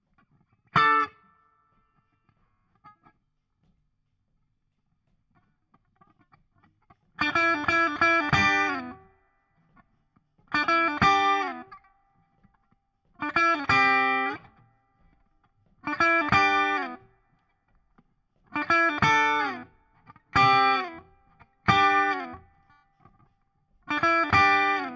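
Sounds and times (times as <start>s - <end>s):
guitar solo: 0.7s - 1.4s, 7.2s - 9.1s, 10.5s - 11.9s, 13.2s - 14.6s, 15.8s - 17.1s, 18.5s - 22.8s, 23.9s - 24.9s.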